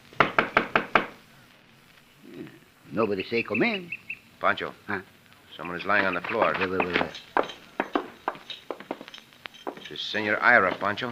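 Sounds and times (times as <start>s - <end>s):
knocks on an open cabin door: 0.2s - 1.1s, 6.2s - 9.0s
speech: 2.9s - 7.3s, 9.9s - 11.1s.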